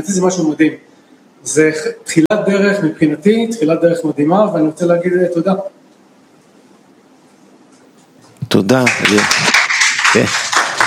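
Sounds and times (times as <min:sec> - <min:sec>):
speech: 0:00.0 - 0:05.8, 0:08.5 - 0:10.5
audience clapping: 0:08.5 - 0:10.8.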